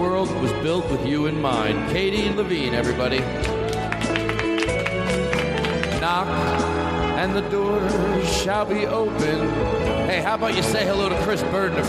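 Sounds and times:
speech: 0.2s - 3.8s, 6.1s - 11.8s
audience applause: 3.4s - 6.3s.

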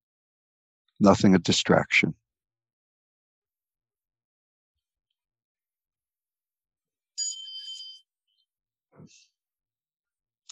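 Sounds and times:
speech: 1.0s - 2.2s
meditation bell ringing: 7.2s - 8.1s.

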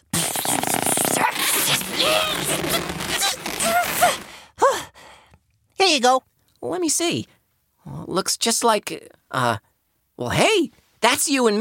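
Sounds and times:
balloon being twisted into balloon animal: 0.1s - 4.3s
speech: 6.0s - 7.4s, 8.1s - 11.5s.

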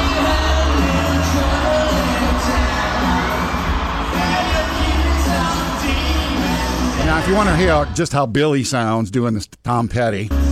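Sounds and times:
concert audience cheering, shouting and whooping: 0.0s - 8.0s
speech: 7.3s - 10.4s.

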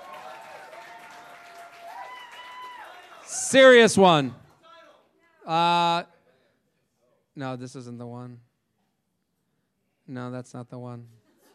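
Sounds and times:
audience applause: 0.0s - 3.8s
speech: 3.3s - 4.4s, 5.5s - 6.1s, 7.4s - 8.5s, 10.1s - 11.2s.

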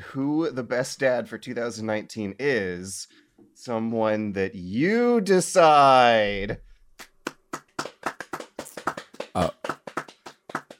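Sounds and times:
speech: 0.1s - 6.7s, 9.4s - 9.6s
hands clapping: 7.0s - 10.7s.

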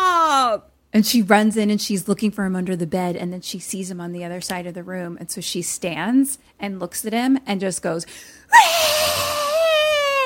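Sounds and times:
speech: 0.6s - 9.4s
person imitating a high-pitched shriek: 8.5s - 10.2s.

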